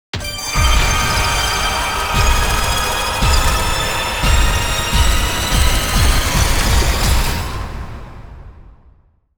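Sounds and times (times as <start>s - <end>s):
big win jingle: 0.2s - 7.4s.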